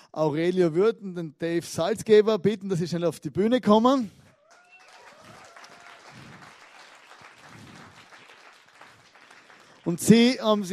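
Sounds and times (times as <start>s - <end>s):
speech: 0.2s - 4.2s, 9.9s - 10.7s
audience applause: 4.3s - 10.3s.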